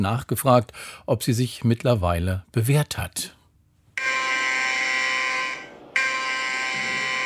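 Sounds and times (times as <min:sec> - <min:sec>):
speech: 0:00.0 - 0:03.4
KatWarn smartphone emergency warning tone: 0:04.0 - 0:07.2.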